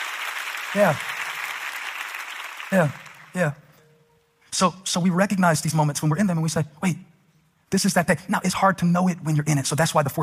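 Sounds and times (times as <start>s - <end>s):
audience clapping hands: 0.0s - 3.6s
speech: 0.7s - 1.2s, 2.7s - 3.6s, 4.6s - 7.1s, 7.7s - 10.2s.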